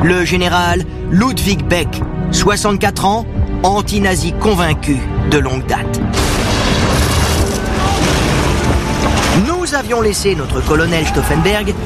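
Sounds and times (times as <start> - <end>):
speech: 0.0 - 6.3, 9.4 - 11.8
bomb explosion: 6.2 - 9.5.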